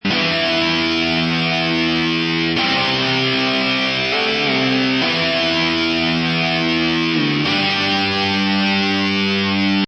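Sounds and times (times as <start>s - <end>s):
electric guitar chords loop in E minor at 98 BPM: 0.0s - 9.8s.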